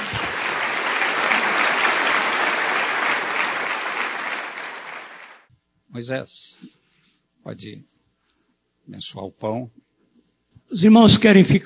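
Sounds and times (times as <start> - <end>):
audience applauding: 0.0 - 5.5
speech: 6.0 - 6.8, 7.4 - 7.9, 8.9 - 9.8, 10.7 - 11.6.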